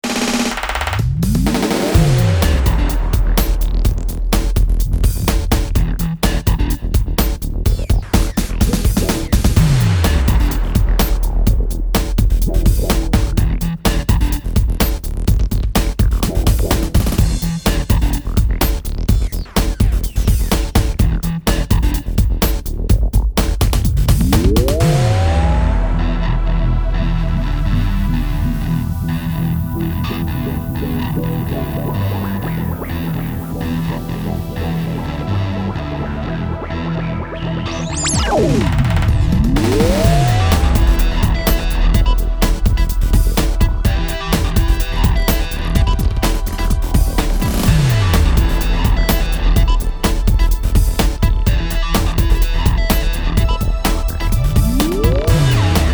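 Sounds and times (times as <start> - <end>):
big beat music on a Roland Fantom X: 0.0 - 55.9.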